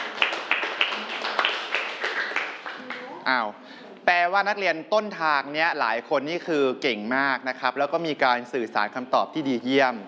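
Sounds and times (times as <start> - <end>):
small group of students clapping: 0.0 - 3.1
speech: 3.3 - 10.0.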